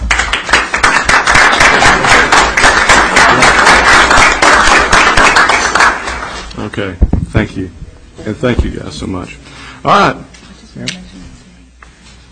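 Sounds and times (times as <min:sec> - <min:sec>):
audience round of applause: 0:00.0 - 0:06.4
speech: 0:06.8 - 0:10.2, 0:10.8 - 0:11.0.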